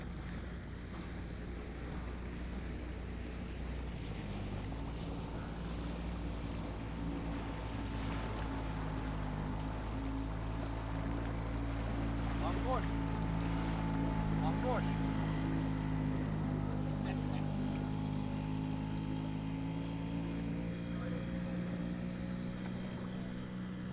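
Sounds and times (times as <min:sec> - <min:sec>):
waves on a pontoon at a Budapest marina: 0:00.0 - 0:23.9.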